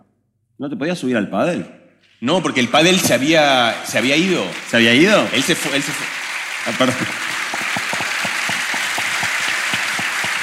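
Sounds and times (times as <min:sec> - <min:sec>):
speech: 0:00.6 - 0:07.8
people applauding: 0:02.6 - 0:10.4.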